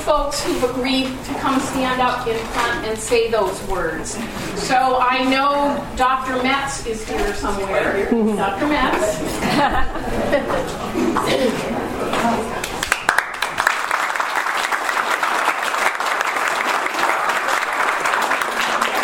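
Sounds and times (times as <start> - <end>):
speech: 0.1 - 12.5
laughter: 7.8 - 12.8
audience applause: 12.1 - 19.0.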